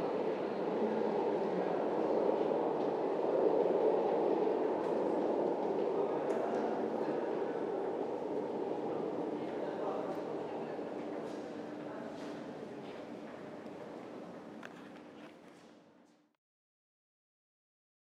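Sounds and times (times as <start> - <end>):
S-Bahn train arriving and departing: 0.0 - 11.9.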